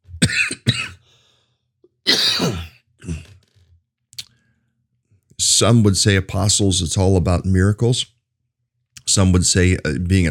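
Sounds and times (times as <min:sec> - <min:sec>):
harsh coughing after swallowing wrong: 0:00.2 - 0:01.0, 0:02.0 - 0:03.4
speech: 0:05.6 - 0:08.2, 0:09.2 - 0:10.2.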